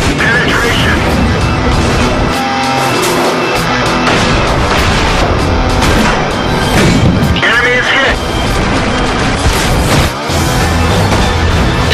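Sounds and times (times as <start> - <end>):
tank engine rumbling: 0.0 - 11.9
tank gunfire and explosions from World of Tanks: 0.0 - 11.9
people talking: 7.4 - 8.2.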